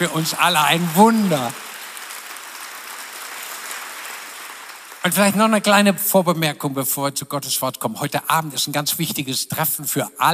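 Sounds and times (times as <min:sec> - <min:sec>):
speech: 0:00.0 - 0:01.7, 0:05.0 - 0:10.3
audience applause: 0:00.0 - 0:06.0.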